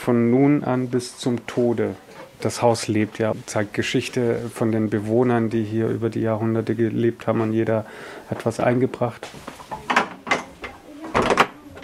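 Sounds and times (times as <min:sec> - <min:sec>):
speech: 0:00.0 - 0:09.6
classic split kitchen door in a centuries-old house knocking and thumping: 0:11.1 - 0:11.6.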